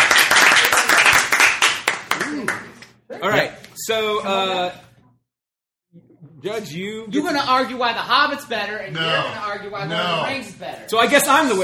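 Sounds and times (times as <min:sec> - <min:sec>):
audience applause: 0:00.0 - 0:02.7
speech: 0:03.2 - 0:04.8, 0:06.4 - 0:11.6.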